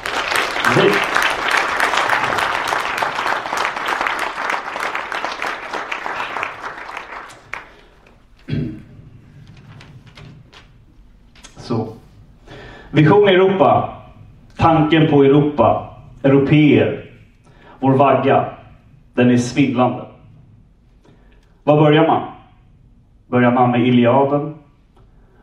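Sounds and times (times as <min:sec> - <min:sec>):
audience applause: 0:00.0 - 0:08.2
speech: 0:13.0 - 0:13.9, 0:14.6 - 0:17.0, 0:17.9 - 0:18.5, 0:19.2 - 0:20.0, 0:21.7 - 0:22.3, 0:23.3 - 0:24.5.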